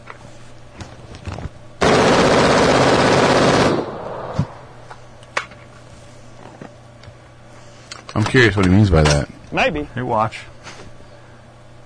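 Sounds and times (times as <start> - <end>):
machine gun automatic burst: 1.8 - 4.4
speech: 8.3 - 10.5.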